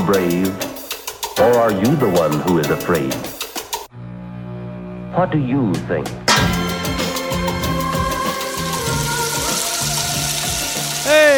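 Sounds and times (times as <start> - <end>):
speech: 0.1 - 0.7, 1.4 - 3.4, 5.2 - 6.5
food sizzling on a hot griddle: 7.4 - 11.3.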